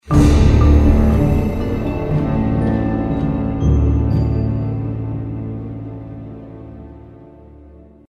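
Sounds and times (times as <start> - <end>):
music stinger: 0.0 - 7.2.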